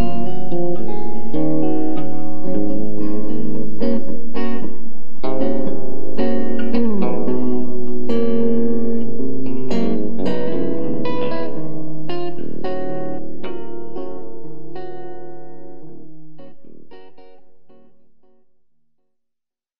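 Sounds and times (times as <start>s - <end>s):
bass solo: 0.0s - 14.9s.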